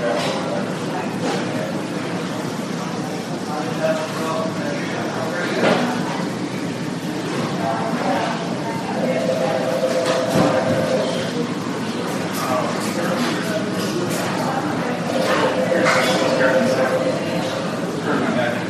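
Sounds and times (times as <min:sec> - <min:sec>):
overlapping voices murmuring in a hospital emergency room: 0:00.0 - 0:18.6
sustained mid-pitched tone: 0:09.0 - 0:11.4, 0:15.1 - 0:18.2.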